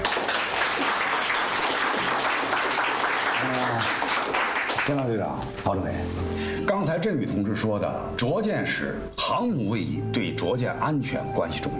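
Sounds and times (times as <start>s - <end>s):
applause for honoured soldiers: 0.0s - 5.3s
speech: 4.9s - 11.7s.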